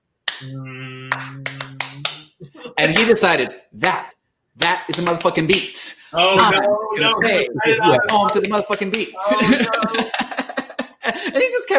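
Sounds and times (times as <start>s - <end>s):
car wash clap: 0.2s - 0.5s, 1.1s - 5.8s, 7.0s - 10.2s
speech: 0.4s - 1.5s, 2.8s - 10.4s, 11.1s - 11.7s
laughter: 2.4s - 3.1s, 6.2s - 11.7s.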